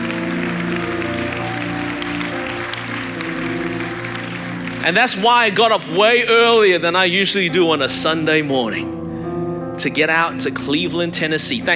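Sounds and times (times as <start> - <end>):
people clapping in praise: 0.0 - 5.9
speech: 4.8 - 9.0, 9.8 - 11.7.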